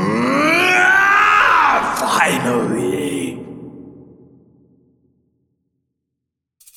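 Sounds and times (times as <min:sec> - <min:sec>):
deep dark horrible scream: 0:00.0 - 0:04.8.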